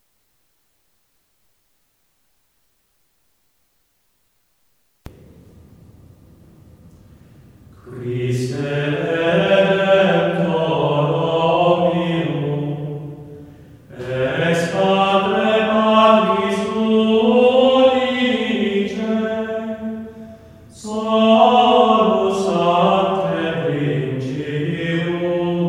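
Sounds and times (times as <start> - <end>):
hymn in fauxbourdon style: 7.7 - 25.6.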